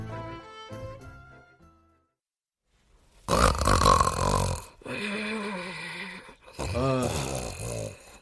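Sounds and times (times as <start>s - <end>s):
snoring of a sleeping person: 3.2s - 8.2s.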